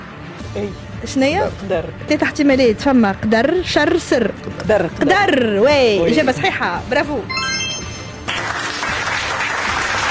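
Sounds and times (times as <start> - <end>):
speech: 0.5 - 7.5
quiz game show audience clapping after a correct answer: 8.2 - 10.0.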